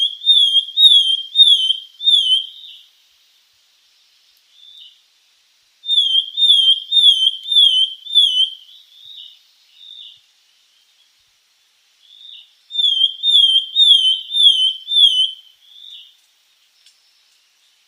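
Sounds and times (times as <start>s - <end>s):
Javan sparrow singing: 0.0s - 2.9s, 5.9s - 11.3s, 12.0s - 17.8s.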